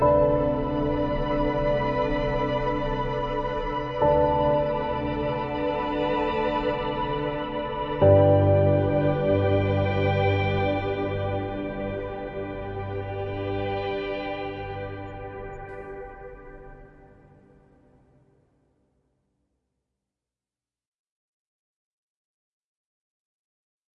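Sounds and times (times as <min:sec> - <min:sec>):
ambient music: 0:00.0 - 0:18.2.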